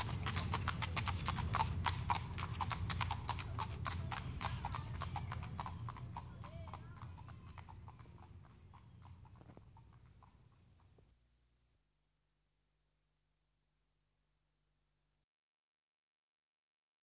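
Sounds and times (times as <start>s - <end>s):
horses trotting past: 0.0s - 11.2s.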